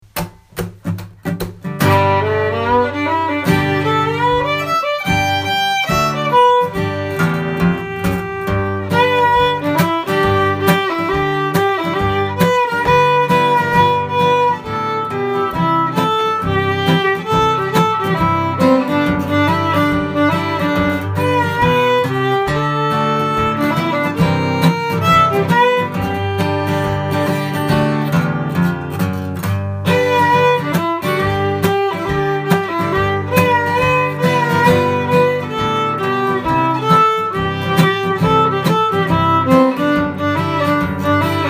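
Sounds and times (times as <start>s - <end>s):
blues music: 0.0s - 41.4s.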